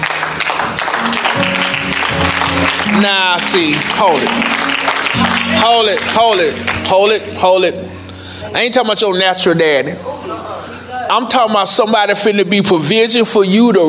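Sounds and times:
crowd cheering: 0:00.0 - 0:06.9
audience clapping: 0:00.0 - 0:07.2
speech: 0:03.0 - 0:10.1, 0:11.1 - 0:13.8.

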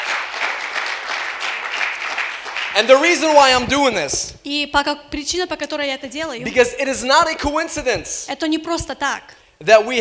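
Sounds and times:
church audience applause: 0:00.0 - 0:03.4
speech: 0:02.8 - 0:09.9.

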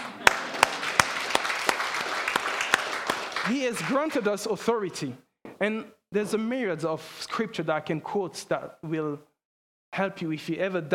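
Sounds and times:
audience applause: 0:00.0 - 0:04.3
speech: 0:03.5 - 0:09.3, 0:09.9 - 0:10.9.

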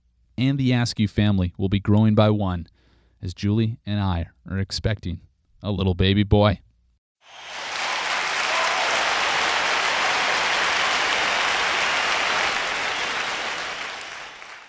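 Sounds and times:
speech: 0:00.4 - 0:06.6
canned applause sound effect: 0:07.2 - 0:14.6.

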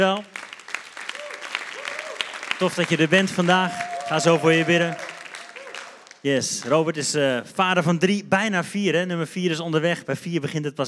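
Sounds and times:
speech: 0:00.0 - 0:00.3, 0:02.6 - 0:05.0, 0:06.2 - 0:10.8
audience applause: 0:00.0 - 0:06.9.

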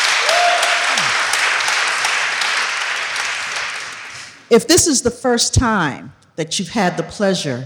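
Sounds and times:
audience clapping: 0:00.0 - 0:04.5
speech: 0:04.5 - 0:07.6.

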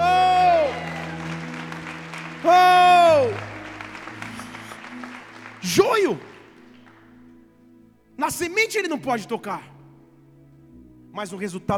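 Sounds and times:
audience applauding: 0:00.0 - 0:07.2
speech: 0:05.7 - 0:06.3, 0:08.3 - 0:09.7, 0:11.2 - 0:11.7.

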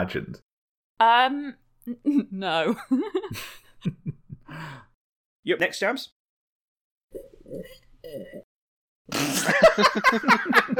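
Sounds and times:
speech: 0:00.0 - 0:06.2, 0:07.1 - 0:08.5, 0:09.1 - 0:10.7
person slurping while eating: 0:07.1 - 0:08.5, 0:09.1 - 0:09.6
laughter: 0:09.4 - 0:10.7.

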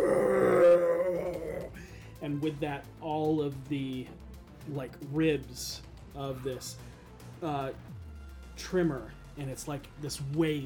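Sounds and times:
monster roaring in pain: 0:00.0 - 0:01.7
speech: 0:02.4 - 0:08.0, 0:08.6 - 0:10.6.

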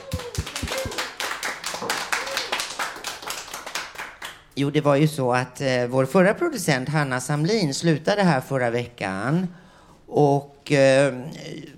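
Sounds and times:
applause: 0:00.0 - 0:04.6
speech: 0:04.6 - 0:11.7.

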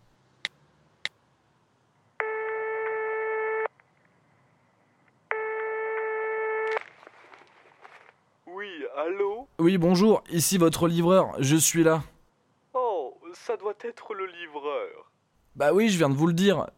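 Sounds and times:
outgoing telephone call ringing tone: 0:02.2 - 0:03.7, 0:05.3 - 0:06.6
faint rustling: 0:06.7 - 0:08.4
speech: 0:09.0 - 0:12.1, 0:13.8 - 0:16.7.

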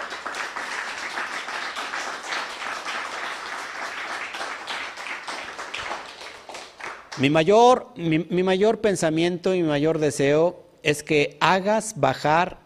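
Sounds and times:
audience applause: 0:00.0 - 0:07.2
speech: 0:07.2 - 0:12.6.

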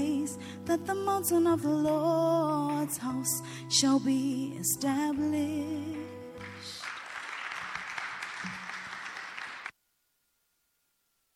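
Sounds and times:
speech: 0:00.7 - 0:06.2
crowd clapping: 0:06.4 - 0:09.7.

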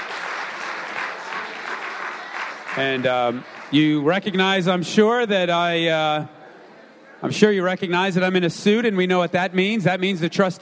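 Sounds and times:
chapel service audience applause welcoming guests: 0:00.0 - 0:04.2
speech: 0:02.8 - 0:06.4, 0:07.2 - 0:10.6.

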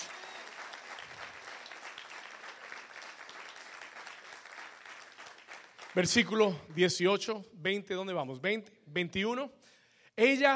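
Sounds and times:
audience applauding: 0:00.0 - 0:06.7
speech: 0:06.0 - 0:09.6, 0:10.2 - 0:10.5.

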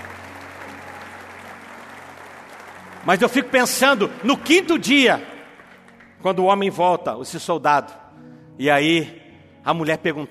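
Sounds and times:
audience applauding the women during a religious talk: 0:00.0 - 0:06.2
speech: 0:03.0 - 0:05.3, 0:06.2 - 0:08.0, 0:08.6 - 0:10.2.

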